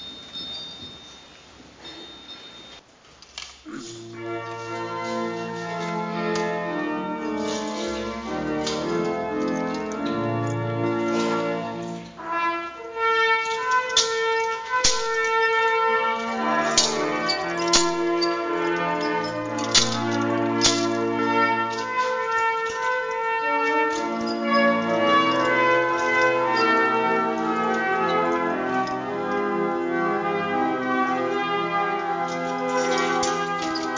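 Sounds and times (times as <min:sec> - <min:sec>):
pilgrimage church bells ringing in Biberbach near Augsburg in Bavarian Swabia: 0:00.0 - 0:02.8, 0:04.0 - 0:33.9.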